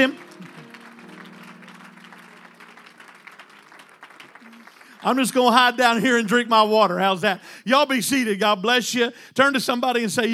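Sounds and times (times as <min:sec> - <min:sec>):
audience clapping hands: 0:00.0 - 0:06.4
speech: 0:05.0 - 0:10.3.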